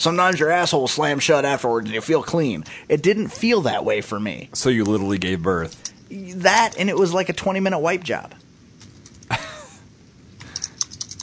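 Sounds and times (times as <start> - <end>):
speech: 0.0 - 8.4
light keyboard typing: 10.4 - 11.2.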